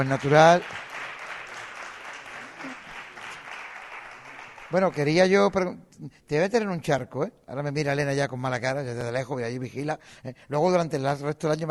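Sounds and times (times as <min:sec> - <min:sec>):
speech: 0:00.0 - 0:00.8, 0:04.7 - 0:11.7
audience applause: 0:00.0 - 0:05.2.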